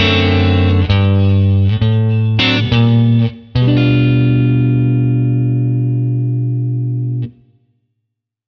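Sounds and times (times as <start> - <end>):
slow walking bass line with inversions: 0.0 - 7.2.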